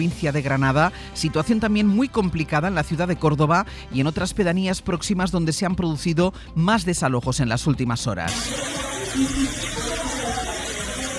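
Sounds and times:
speech: 0:00.0 - 0:10.0
floodwater seeping through house walls and electrical sockets: 0:08.3 - 0:11.1.

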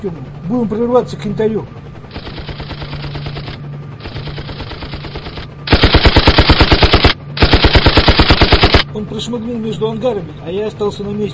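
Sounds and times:
speech: 0:00.0 - 0:02.4, 0:09.0 - 0:11.3
machine gun fire: 0:02.1 - 0:08.8.

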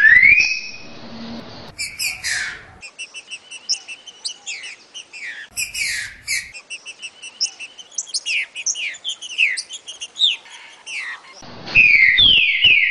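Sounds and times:
green-winged saltator song: 0:00.0 - 0:00.8, 0:01.7 - 0:12.8.

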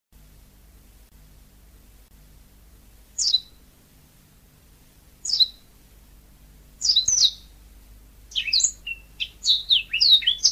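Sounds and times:
Oriental magpie-robin song: 0:03.2 - 0:03.6, 0:05.2 - 0:05.7, 0:06.8 - 0:07.6, 0:08.3 - 0:10.5.

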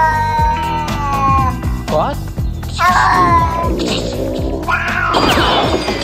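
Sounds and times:
neighbours' cat trapped inside a camping trailer meowing: 0:00.0 - 0:01.8, 0:02.8 - 0:05.8
clattering thumps and crashes of a cat wrecking a camping trailer interior: 0:03.4 - 0:06.0.

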